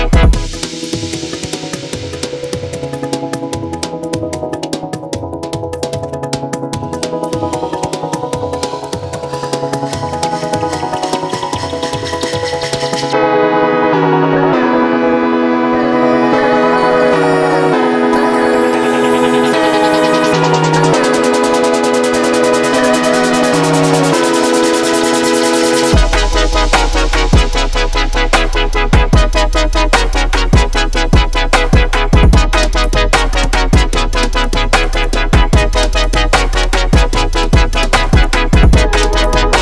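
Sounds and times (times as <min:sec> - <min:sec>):
lo-fi future bass music: 0:00.0 - 0:39.6.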